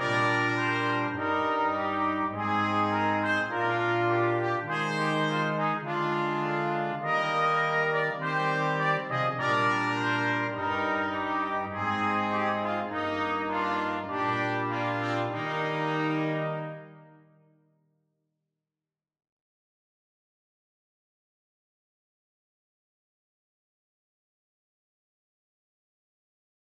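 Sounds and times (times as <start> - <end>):
brass quintet: 0.0 - 17.5.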